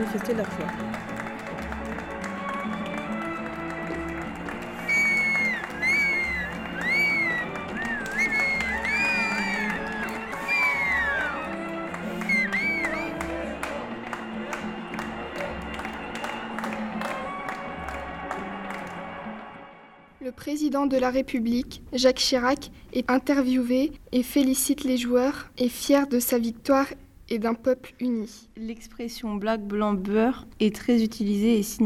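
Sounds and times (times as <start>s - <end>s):
speech: 0.0s - 1.2s, 20.7s - 31.8s
clapping: 0.0s - 19.5s
crowd cheering France's 1998 World Cup win on the Champs-Élysées: 0.0s - 19.7s
shrill whistles: 4.6s - 13.2s.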